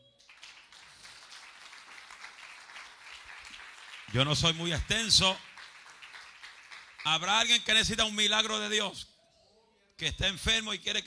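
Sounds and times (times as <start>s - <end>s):
audience applause: 0.2s - 7.5s
speech: 4.1s - 5.5s, 7.1s - 9.1s, 10.0s - 11.0s.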